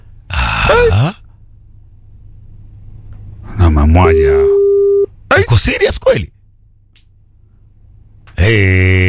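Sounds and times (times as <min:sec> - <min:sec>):
person groaning: 0:00.3 - 0:01.2
speech: 0:04.0 - 0:04.6, 0:05.4 - 0:06.4, 0:08.5 - 0:09.0
telephone ringback tone on an unanswered outgoing call: 0:04.5 - 0:05.1.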